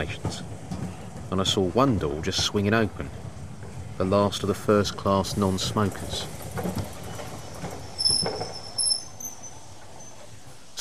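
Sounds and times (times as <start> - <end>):
speech: 0.0 - 0.5, 1.3 - 3.2, 4.0 - 6.9
passenger train running on rails: 0.0 - 10.8
train wheels clunking: 0.0 - 10.8
high-pitched squeals of metal: 7.1 - 10.4.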